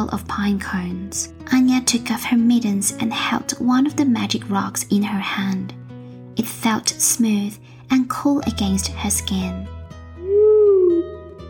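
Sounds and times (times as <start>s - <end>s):
speech: 0.1s - 5.8s, 6.4s - 9.8s
barred owl call: 10.2s - 11.3s.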